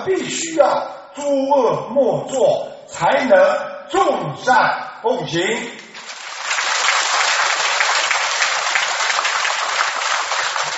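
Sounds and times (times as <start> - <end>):
speech: 0.0 - 5.8
audience applause: 5.9 - 10.7.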